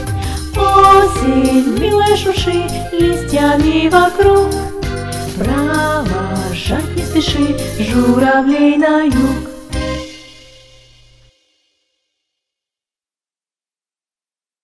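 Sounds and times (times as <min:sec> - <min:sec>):
children's songs about autumn: 0:00.0 - 0:09.7.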